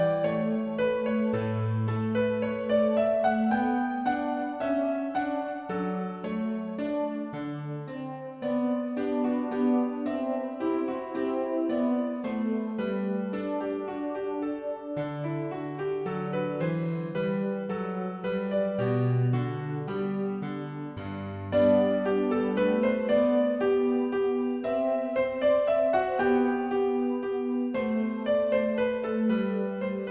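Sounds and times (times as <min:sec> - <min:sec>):
minuet music: 0:00.0 - 0:30.0.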